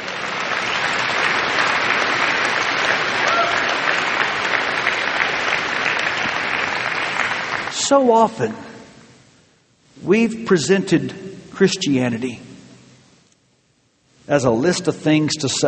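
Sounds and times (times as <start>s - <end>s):
audience clapping: 0.0s - 8.4s
speech: 7.9s - 8.7s, 10.1s - 12.4s, 14.3s - 15.6s.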